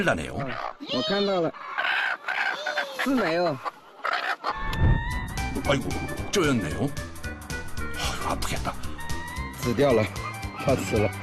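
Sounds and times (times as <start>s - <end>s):
speech: 0.0s - 1.7s, 3.0s - 3.7s, 5.6s - 7.1s, 8.2s - 8.8s, 9.6s - 11.2s
chicken clucking: 0.2s - 6.0s.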